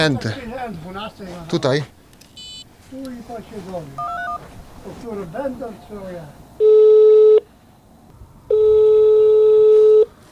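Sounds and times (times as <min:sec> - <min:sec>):
speech: 0:00.0 - 0:02.0, 0:02.9 - 0:07.4
telephone busy signal: 0:04.0 - 0:04.4, 0:06.6 - 0:07.4, 0:08.5 - 0:10.1.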